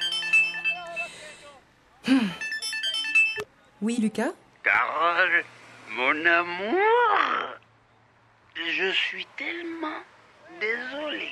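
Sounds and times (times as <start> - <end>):
phone ringing with an incoming call: 0.0 - 1.3, 2.2 - 3.5
speech: 3.8 - 7.6, 8.6 - 11.3.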